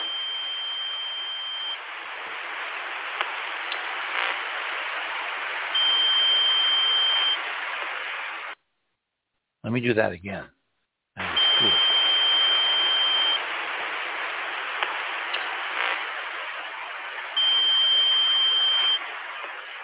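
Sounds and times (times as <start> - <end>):
long steady electronic tone: 0.0 - 1.8, 5.8 - 7.4, 11.2 - 13.4, 17.4 - 19.0
radio-like static: 0.0 - 8.6, 11.2 - 19.8
thin high whine: 0.0 - 8.6, 11.2 - 19.8
speech: 9.7 - 10.6, 11.6 - 11.8.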